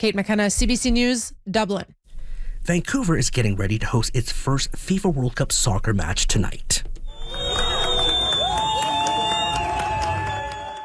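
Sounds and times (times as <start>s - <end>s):
speech: 0.0s - 2.0s, 2.6s - 7.4s
soccer fans cheering as team bus arrives in Vancouver: 7.1s - 10.8s.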